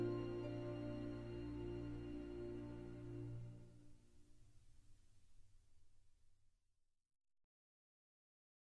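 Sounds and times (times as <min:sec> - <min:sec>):
orchestra playing instrumental music: 0:00.0 - 0:03.9.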